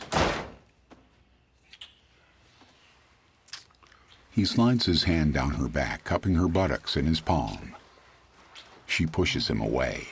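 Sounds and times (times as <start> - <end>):
door shutting thud: 0.0 - 0.6
speech: 4.4 - 7.8, 9.0 - 10.0.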